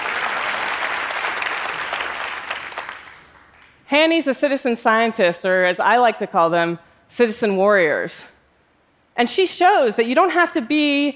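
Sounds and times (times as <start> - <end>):
crowd applause: 0.0 - 3.7
speech: 3.9 - 8.3, 9.2 - 11.1.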